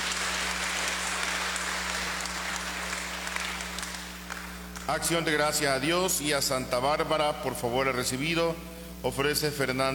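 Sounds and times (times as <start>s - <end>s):
applause: 0.0s - 5.1s
speech: 4.9s - 9.9s.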